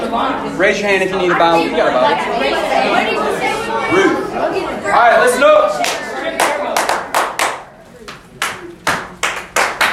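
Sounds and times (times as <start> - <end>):
speech: 0.1 - 3.1, 3.9 - 5.9
audience clapping: 5.8 - 9.9.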